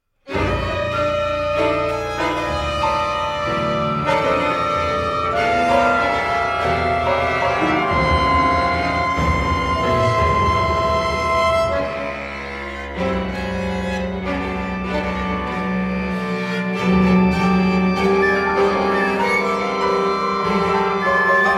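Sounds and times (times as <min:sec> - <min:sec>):
violin concerto: 0:00.3 - 0:21.5.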